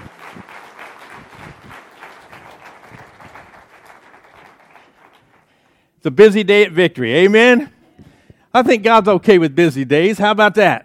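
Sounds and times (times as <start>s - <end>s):
audience hand clapping: 0.0s - 5.8s
speech: 6.0s - 7.8s, 8.5s - 10.8s.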